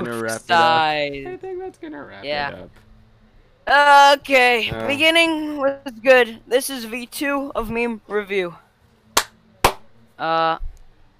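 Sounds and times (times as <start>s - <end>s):
speech: 0.1s - 2.9s, 3.7s - 8.6s, 10.2s - 10.7s
hand claps: 9.2s - 9.9s.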